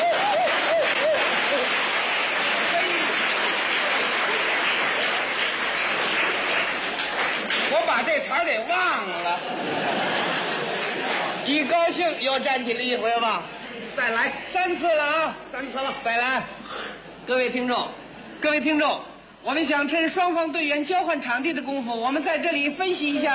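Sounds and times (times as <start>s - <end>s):
laughter: 0.0s - 7.0s, 9.0s - 12.0s
crowd cheering and applauding: 0.0s - 8.0s
speech: 8.0s - 10.1s, 11.5s - 16.6s, 17.3s - 23.3s.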